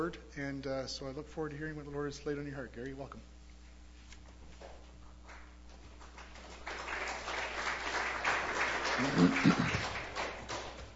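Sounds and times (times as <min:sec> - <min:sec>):
speech: 0:00.0 - 0:03.3
audience applause: 0:06.0 - 0:10.9.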